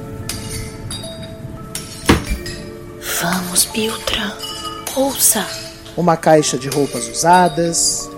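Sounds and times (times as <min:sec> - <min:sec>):
stored objects and old pots knocked over clattering: 0:01.7 - 0:02.8
thud: 0:02.1 - 0:02.5
speech: 0:03.2 - 0:08.1.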